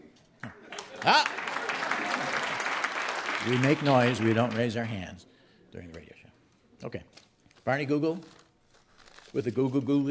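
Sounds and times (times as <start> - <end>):
studio audience applause: 0.6 - 5.0
speech: 1.0 - 1.4, 3.4 - 6.2, 6.8 - 8.4, 9.3 - 10.0.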